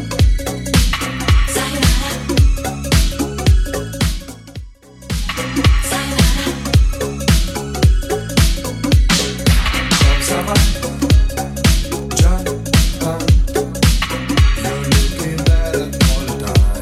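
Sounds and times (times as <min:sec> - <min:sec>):
eighties style music loop: 0:00.0 - 0:16.7.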